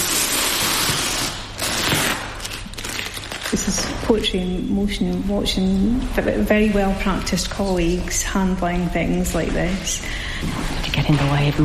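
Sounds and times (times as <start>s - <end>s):
paper tape being unwrapped: 0.0s - 4.0s
speech: 3.7s - 11.6s.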